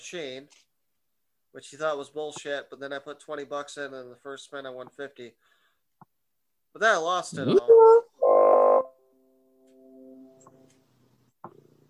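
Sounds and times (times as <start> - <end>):
speech: 0.1 - 0.7, 1.5 - 5.6, 6.8 - 8.0
robotic computer fart sound: 7.3 - 10.5.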